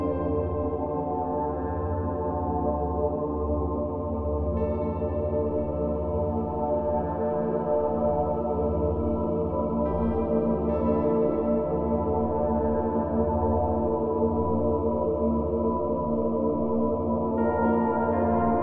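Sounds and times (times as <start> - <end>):
ambient soundscape piano: 0.0 - 18.6.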